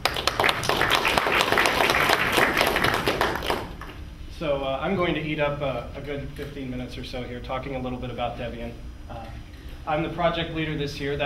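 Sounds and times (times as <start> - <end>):
audience applause: 0.0 - 3.9
speech: 4.5 - 11.2.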